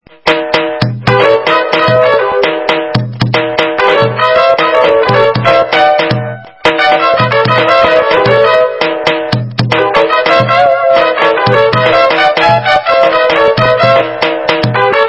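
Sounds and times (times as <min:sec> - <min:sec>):
chaotic jazz music: 0:00.0 - 0:15.0.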